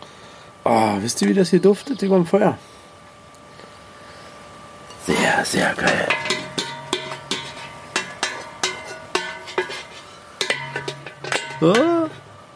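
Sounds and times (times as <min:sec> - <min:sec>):
speech: 0:00.7 - 0:02.7, 0:05.4 - 0:06.0, 0:11.6 - 0:11.9
metal pot lid clattering: 0:05.8 - 0:12.3.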